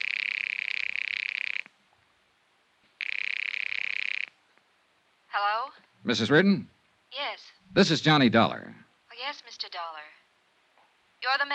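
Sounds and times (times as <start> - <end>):
telephone ringing: 0.0 - 1.6, 3.0 - 4.3
speech: 5.4 - 10.1, 11.2 - 11.5.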